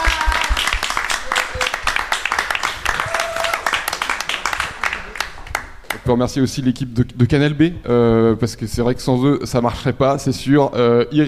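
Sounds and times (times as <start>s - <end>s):
audience applauding: 0.0s - 6.0s
speech: 6.1s - 11.2s.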